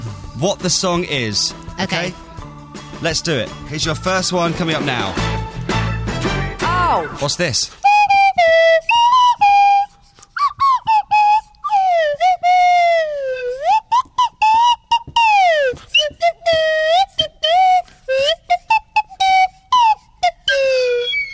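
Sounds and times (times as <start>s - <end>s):
speech: 0.4s - 2.2s, 3.0s - 5.4s, 6.9s - 7.8s
swanee whistle playing a tune: 7.8s - 21.3s.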